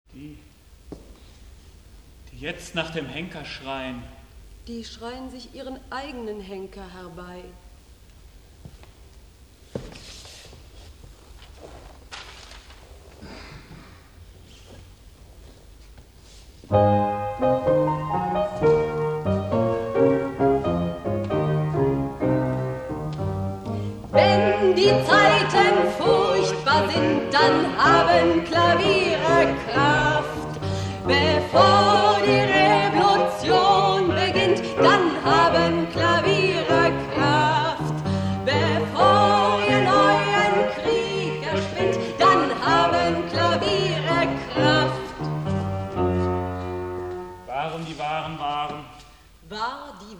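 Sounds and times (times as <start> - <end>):
piano playing: 16.7 - 47.9.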